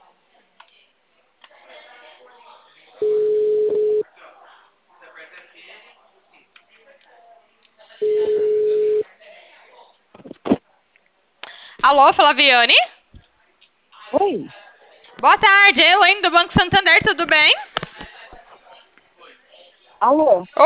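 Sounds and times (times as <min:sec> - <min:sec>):
ringback tone of an outgoing telephone call: 0:03.0 - 0:04.0, 0:08.0 - 0:09.0
speech: 0:11.9 - 0:12.8, 0:15.2 - 0:17.7, 0:20.0 - 0:20.6.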